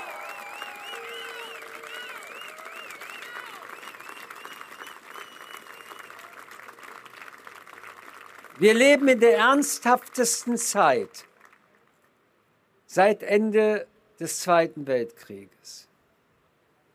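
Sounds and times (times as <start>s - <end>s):
audience applause at a commemoration for a murdered politician: 0.0s - 10.4s
speech: 8.6s - 11.3s, 13.0s - 15.9s.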